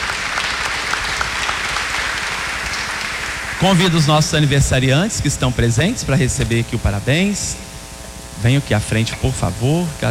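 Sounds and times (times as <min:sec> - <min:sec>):
round of applause: 0:00.0 - 0:04.6
speech: 0:03.6 - 0:07.7, 0:08.4 - 0:10.1.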